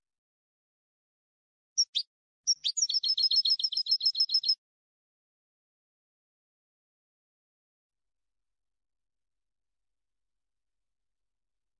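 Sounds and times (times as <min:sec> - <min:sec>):
European goldfinch liquid twitters: 0:01.8 - 0:04.6.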